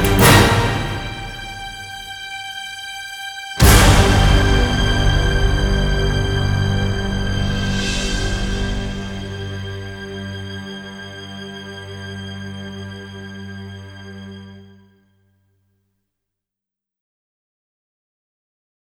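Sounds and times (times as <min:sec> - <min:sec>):
orchestral horror and sci-fi trailer music: 0:00.0 - 0:14.8.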